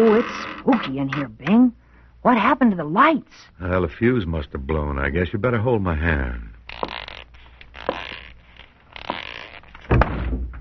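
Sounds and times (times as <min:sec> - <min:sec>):
speech: 0:00.0 - 0:06.9
bumping into a closet door: 0:09.8 - 0:10.5.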